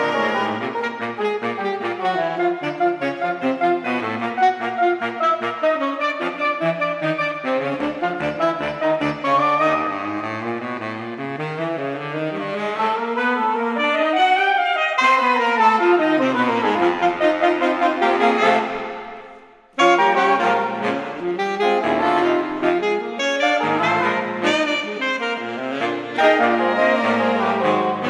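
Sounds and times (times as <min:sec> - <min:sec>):
saxophone orchestra: 0:00.0 - 0:28.0.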